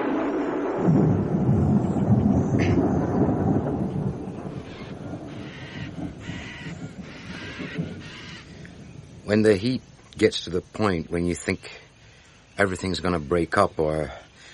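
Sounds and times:
thunder during electric storm: 0.0s - 9.6s
speech: 0.8s - 1.3s, 9.3s - 11.8s, 12.6s - 14.2s.

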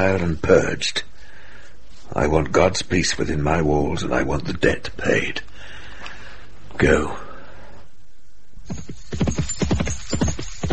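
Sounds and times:
speech: 0.0s - 1.1s, 2.1s - 5.5s, 6.8s - 7.2s
horse hooves clip-clopping: 8.6s - 10.7s.

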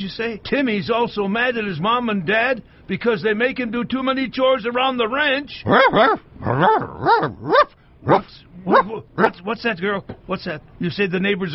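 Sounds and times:
speech: 0.0s - 11.5s
person imitating dog barking, impression of Lassie the Wonder Dog: 5.6s - 9.4s.

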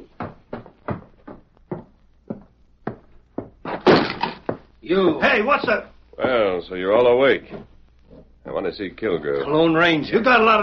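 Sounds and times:
cabin door heavy wooden thuds as man walks in: 0.0s - 4.7s
speech: 4.9s - 7.7s, 8.6s - 10.6s.

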